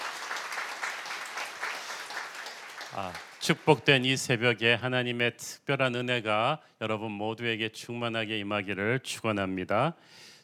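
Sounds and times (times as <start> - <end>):
audience applauding: 0.0 - 4.2
speech: 2.9 - 10.3.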